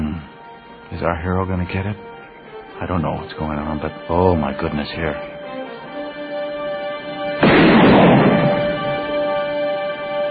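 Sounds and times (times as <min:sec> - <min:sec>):
speech: 0:01.0 - 0:02.1, 0:02.8 - 0:05.3
gun firing a cartridge: 0:07.4 - 0:09.2.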